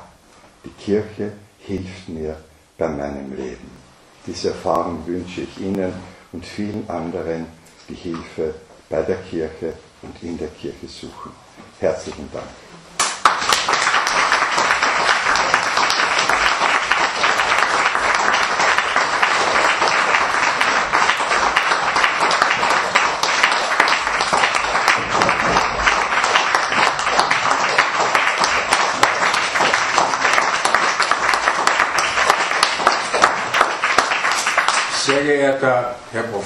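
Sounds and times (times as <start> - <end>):
speech: 0.6 - 12.7
audience applause: 13.0 - 35.3.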